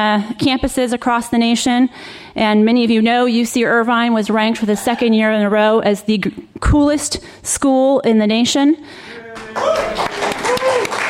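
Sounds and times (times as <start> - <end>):
speech: 0.0 - 10.2
audience clapping: 9.3 - 11.0
voices whooping and cheering: 9.4 - 11.0.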